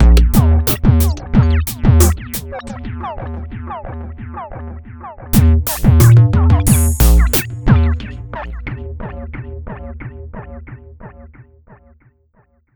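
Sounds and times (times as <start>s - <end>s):
percussion: 0.0s - 3.2s, 5.4s - 10.8s.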